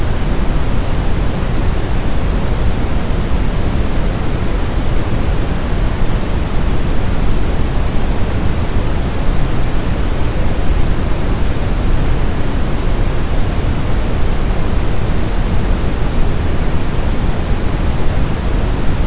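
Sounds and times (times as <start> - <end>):
brown noise: 0.0 - 19.0.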